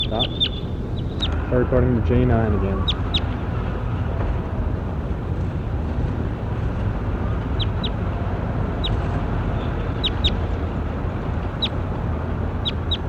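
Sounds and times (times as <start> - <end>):
short high-pitched bird chirps: 0.0 - 1.4, 2.8 - 3.4, 7.5 - 8.0, 8.8 - 9.0, 9.6 - 10.4, 11.5 - 11.8, 12.6 - 13.0
constant low rumbling noise: 0.0 - 13.0
speech: 0.1 - 0.6, 1.5 - 3.0.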